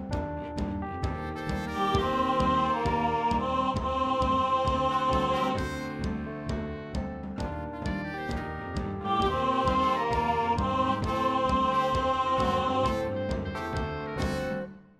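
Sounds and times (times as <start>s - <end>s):
baritone voice: 0.1s - 6.7s, 7.4s - 14.7s.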